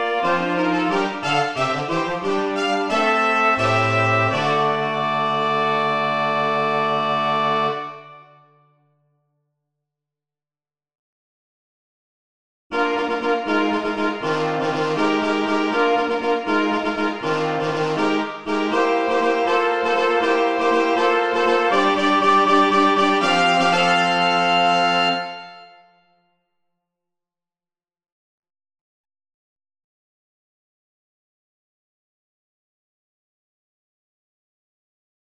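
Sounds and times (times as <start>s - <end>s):
fanfare played by a quartet: 0.0s - 8.6s, 12.7s - 26.0s.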